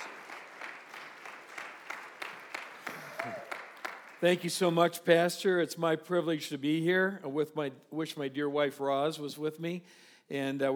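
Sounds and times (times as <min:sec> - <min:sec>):
audience applause: 0:00.0 - 0:04.5
speech: 0:04.2 - 0:10.7.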